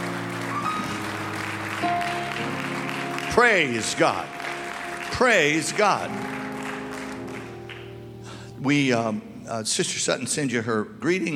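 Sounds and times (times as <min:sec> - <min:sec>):
audience clapping hands: 0:00.0 - 0:08.4
sustained organ-like tones: 0:00.0 - 0:09.6
speech: 0:03.4 - 0:04.4, 0:05.1 - 0:06.4, 0:08.6 - 0:11.3.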